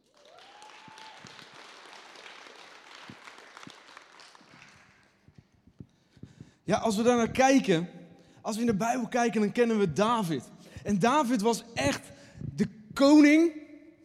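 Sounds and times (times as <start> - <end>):
audience applause: 0.0 - 5.2
speech: 6.7 - 13.6.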